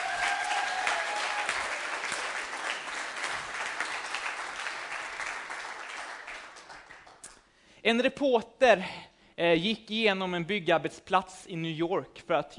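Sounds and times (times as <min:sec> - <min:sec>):
audience applauding: 0:00.0 - 0:07.3
speech: 0:07.8 - 0:12.5.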